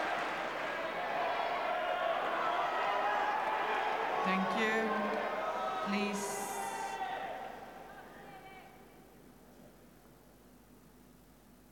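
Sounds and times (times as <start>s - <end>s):
passionate fans cheering: 0.0s - 8.8s
fans chanting a player's name: 4.1s - 8.8s.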